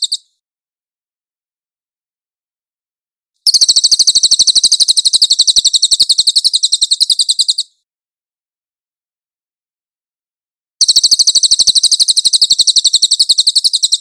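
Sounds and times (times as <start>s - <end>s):
creature singing a fast high buzzy trill: 0.0s - 0.3s, 3.4s - 7.8s, 10.8s - 13.9s.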